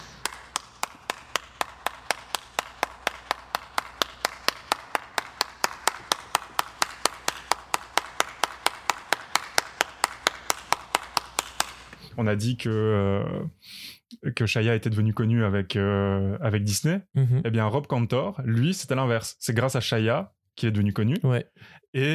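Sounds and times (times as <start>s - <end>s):
single person clapping loudly and fast: 0.0s - 12.1s
speech: 12.2s - 22.1s.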